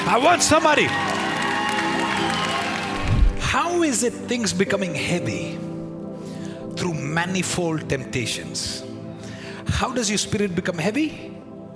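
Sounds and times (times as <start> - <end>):
audience clapping: 0.0 - 3.4
speech: 0.1 - 1.1, 3.5 - 5.7, 6.8 - 8.9, 9.7 - 11.4.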